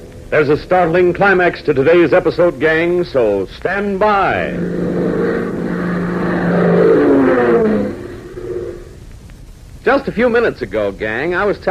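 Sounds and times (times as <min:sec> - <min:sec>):
speech: 0:00.3 - 0:05.2, 0:09.9 - 0:11.7
Beechcraft propeller aircraft engine roaring: 0:04.0 - 0:09.0.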